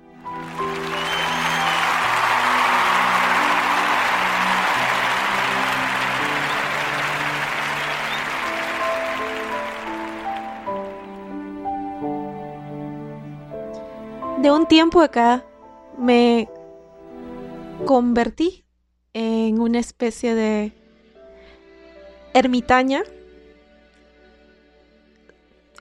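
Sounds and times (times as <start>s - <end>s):
applause: 0.0s - 11.8s
speech: 14.5s - 16.5s, 17.9s - 18.6s, 19.2s - 20.8s, 22.3s - 23.2s.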